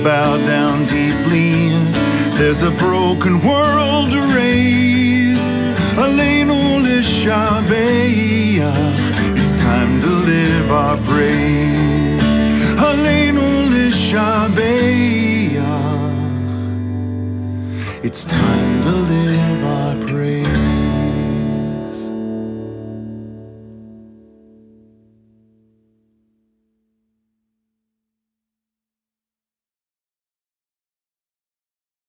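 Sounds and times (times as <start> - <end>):
person singing: 0.0 - 17.0, 17.7 - 22.4
guitar: 0.0 - 26.7.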